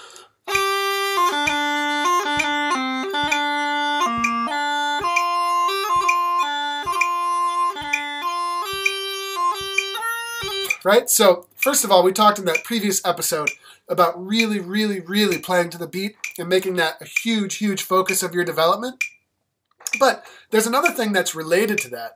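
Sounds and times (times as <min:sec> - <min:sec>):
bagpipe tune played at a conservative tempo with slight beat rushing: 0:00.0 - 0:10.8
speech: 0:10.9 - 0:19.1, 0:20.0 - 0:22.1.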